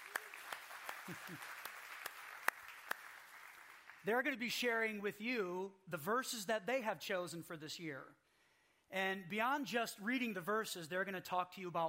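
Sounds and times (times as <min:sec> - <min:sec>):
faint scattered handclaps welcoming people onto a stage: 0:00.0 - 0:04.1
speech: 0:01.1 - 0:01.6, 0:04.0 - 0:08.2, 0:08.9 - 0:11.8.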